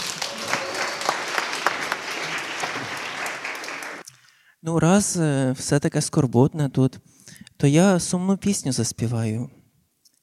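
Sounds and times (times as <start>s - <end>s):
audience applause: 0.0s - 4.0s
speech: 4.6s - 9.6s.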